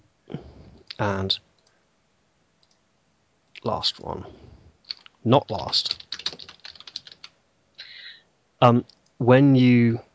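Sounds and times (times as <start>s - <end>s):
speech: 1.0s - 1.5s, 3.6s - 4.4s, 5.2s - 6.4s, 8.6s - 10.1s
rapid computer keyboard typing: 4.9s - 7.4s.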